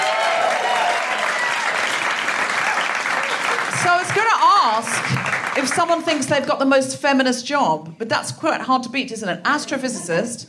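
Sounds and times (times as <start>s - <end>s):
audience applause: 0.0s - 6.2s
speech: 4.7s - 10.4s.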